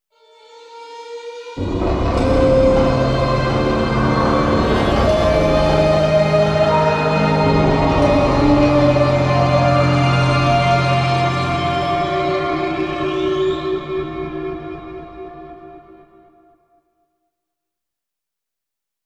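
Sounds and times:
music stinger: 1.5s - 14.2s.

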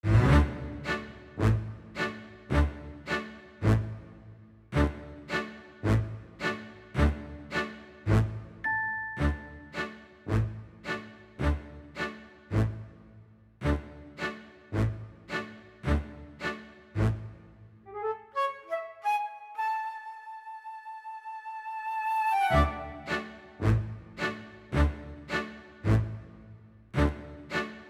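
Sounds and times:
telephone background music: 0.0s - 27.8s.

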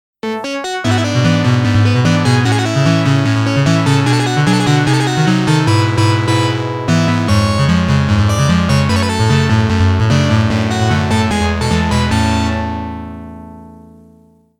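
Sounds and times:
clear background music: 0.2s - 14.4s.

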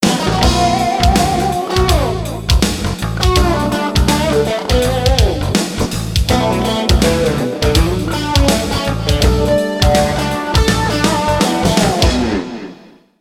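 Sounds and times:
jukebox air guitar: 0.0s - 13.1s.

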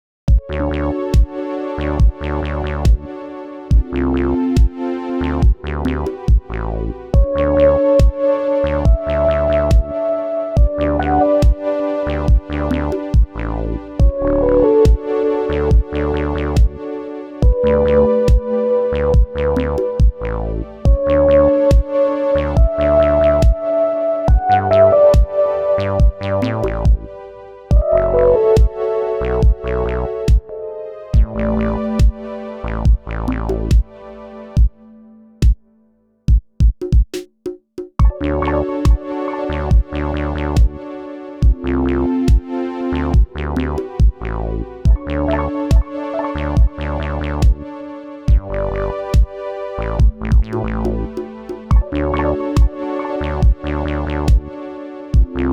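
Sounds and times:
chillwave instrumental music: 0.4s - 37.0s, 38.0s - 55.5s.

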